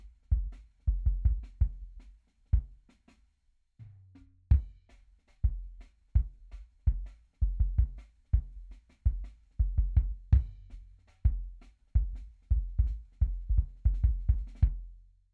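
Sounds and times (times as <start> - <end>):
drum and bass sub kick drum: 0.0 - 2.0, 4.5 - 8.5, 9.1 - 14.9.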